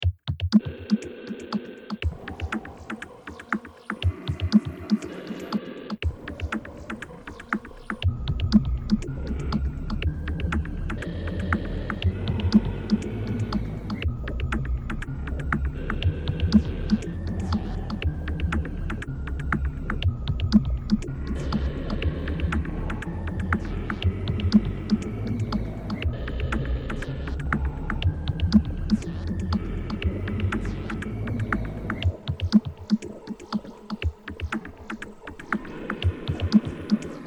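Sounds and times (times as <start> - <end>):
pop remix music: 0.3 - 37.2.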